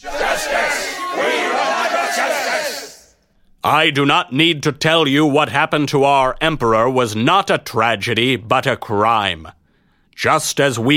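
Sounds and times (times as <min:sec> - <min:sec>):
large crowd of men in an army roaring angrily: 0:00.0 - 0:03.1
rough shouts of men: 0:00.0 - 0:03.2
speech: 0:03.7 - 0:09.6, 0:10.2 - 0:10.9.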